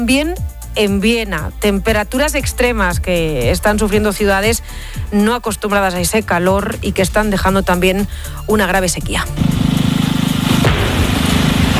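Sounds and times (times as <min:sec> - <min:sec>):
speech: 0:00.0 - 0:09.6
controlled explosion: 0:10.5 - 0:11.7.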